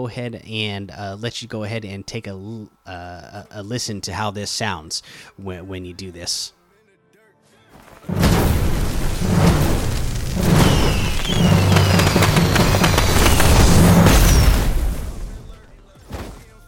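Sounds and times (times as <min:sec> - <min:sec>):
speech: 0:00.0 - 0:06.6
Nitrojerry emote fireworks exploding in a video game: 0:08.1 - 0:15.6.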